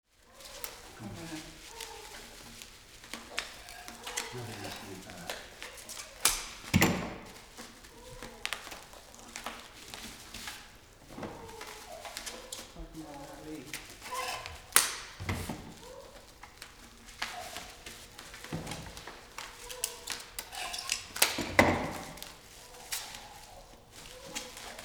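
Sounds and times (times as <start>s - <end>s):
art wrapping in Alajarvi Finland: 0.1s - 24.8s.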